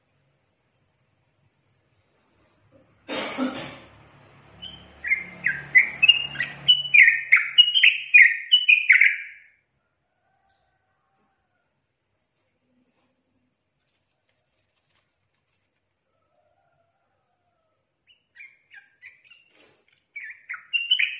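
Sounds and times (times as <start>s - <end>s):
yellow-vented bulbul singing: 4.5s - 9.6s, 18.0s - 21.1s.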